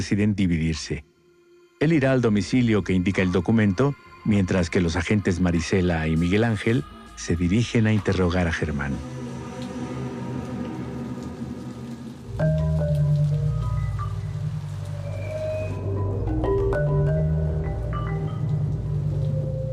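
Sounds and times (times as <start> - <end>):
speech: 0.0 - 1.1, 1.8 - 9.2
heavy stormy November rain pouring over a city: 5.9 - 19.7.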